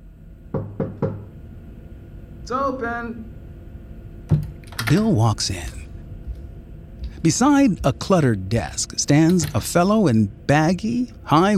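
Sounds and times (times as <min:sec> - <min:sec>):
knocks on an office door: 0:00.5 - 0:01.3, 0:04.3 - 0:04.5
speech: 0:02.5 - 0:03.4, 0:04.9 - 0:05.8, 0:07.2 - 0:11.5.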